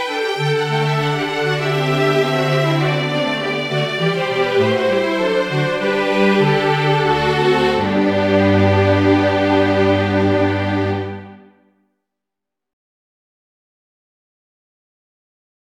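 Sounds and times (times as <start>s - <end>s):
strings playing a fugue: 0.0s - 11.6s.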